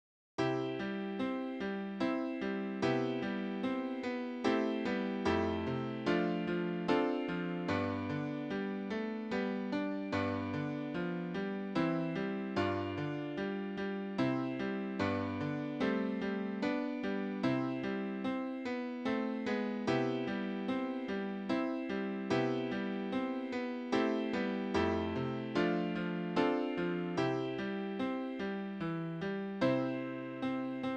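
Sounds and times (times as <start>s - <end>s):
easy piano: 0.4s - 30.9s.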